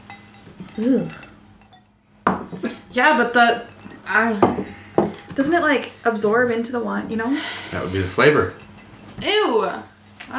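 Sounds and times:
wine glass clinking as it's handed over: 0.0 - 5.4, 8.2 - 9.4
speech: 0.8 - 1.2, 3.0 - 4.6, 5.4 - 8.6, 9.2 - 10.3.

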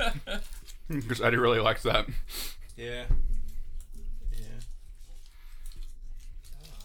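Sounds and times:
wet crunchy chewing of candy against the microphone: 0.0 - 1.7, 2.5 - 6.8
speech: 0.9 - 3.4.

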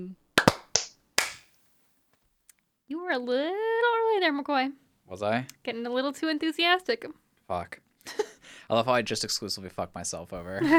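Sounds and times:
sharp hand claps for audio sync: 0.4 - 1.6
speech: 3.1 - 10.7
laughter: 10.4 - 10.7.

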